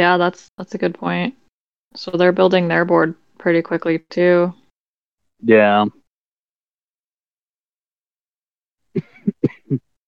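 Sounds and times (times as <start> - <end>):
speech: 0.0 - 4.6, 5.4 - 6.0
person clearing a dry throat: 9.0 - 9.8.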